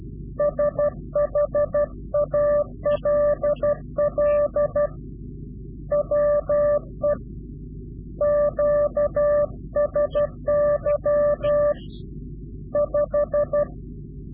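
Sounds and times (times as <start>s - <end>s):
Morse code CW directional call: 0.4s - 5.0s, 5.9s - 7.2s, 8.2s - 12.0s, 12.8s - 13.7s.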